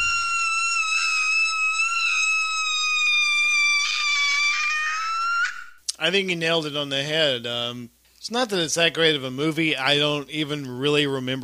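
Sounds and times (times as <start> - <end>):
scream from a film: 0.0 - 5.7
speech: 6.0 - 11.4.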